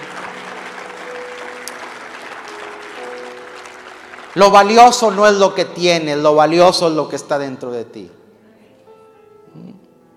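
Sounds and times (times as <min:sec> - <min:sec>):
audience applauding: 0:00.0 - 0:05.8
speech: 0:04.4 - 0:08.2.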